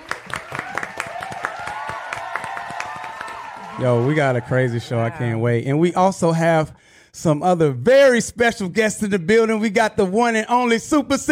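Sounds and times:
audience applause: 0.0s - 5.1s
speech: 3.8s - 11.3s.

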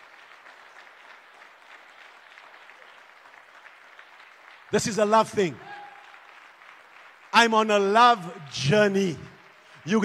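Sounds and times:
audience clapping: 0.0s - 10.0s
speech: 4.7s - 5.7s, 7.4s - 10.0s.

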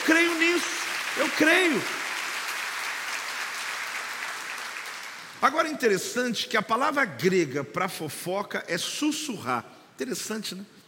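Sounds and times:
crowd applause: 0.0s - 5.4s
speech: 1.2s - 2.0s, 5.4s - 10.8s.

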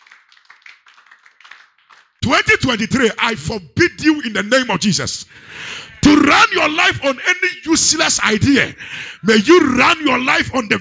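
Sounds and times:
crowd clapping hands: 0.0s - 3.2s
speech: 2.2s - 10.7s.

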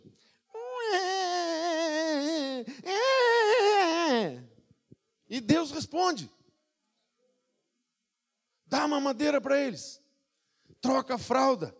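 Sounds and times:
voice imitating a whining baby: 0.6s - 4.4s
speech: 5.3s - 6.4s, 8.9s - 10.0s, 10.8s - 11.7s.

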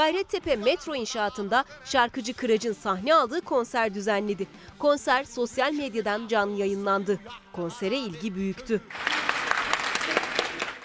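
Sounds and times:
speech: 0.0s - 9.2s
applause from balconies: 8.9s - 10.8s.

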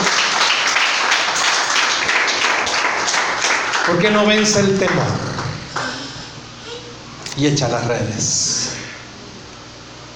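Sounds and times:
crowd applauding: 0.0s - 6.0s
speech: 3.9s - 5.3s, 7.4s - 8.7s.

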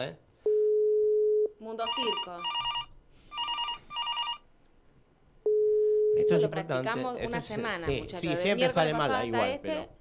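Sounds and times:
speech: 0.0s - 0.2s, 1.6s - 2.6s, 6.2s - 9.9s
telephone ringing for a call to a radio show: 0.5s - 4.4s, 5.5s - 6.5s.

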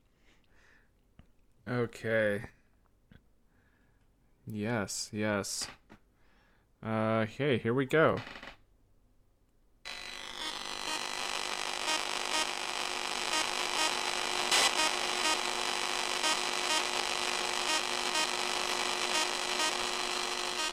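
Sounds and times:
speech: 1.7s - 2.6s, 4.5s - 5.8s, 6.8s - 8.4s
buzzing tonal hums: 9.9s - 20.7s
electronic white noise sample: 10.0s - 20.7s.

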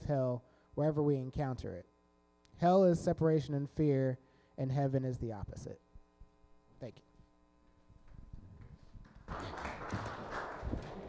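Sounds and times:
speech: 0.1s - 1.9s, 2.6s - 5.8s, 6.8s - 7.1s
thin scattered applause from a few people: 9.0s - 11.0s.

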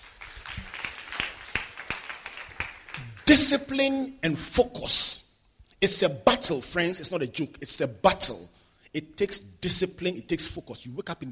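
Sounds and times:
audience clapping: 0.0s - 3.8s
speech: 3.3s - 5.2s, 5.8s - 11.2s.

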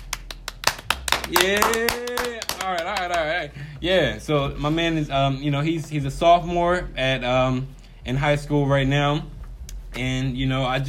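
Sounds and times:
fake clapping: 0.0s - 3.5s
speech: 1.3s - 9.4s, 10.0s - 10.8s.

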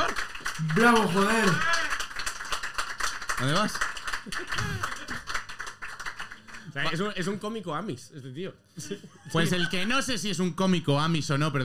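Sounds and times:
audience applause: 0.0s - 7.4s
speech: 0.6s - 1.8s, 3.4s - 5.3s, 6.8s - 11.6s
laughter: 4.2s - 5.4s, 8.8s - 10.0s.

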